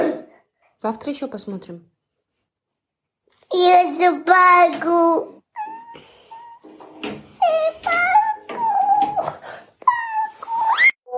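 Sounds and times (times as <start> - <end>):
speech: 0.8 - 1.9, 3.5 - 5.4
small child crying after cartoon was switched off: 5.6 - 6.7, 7.4 - 11.0.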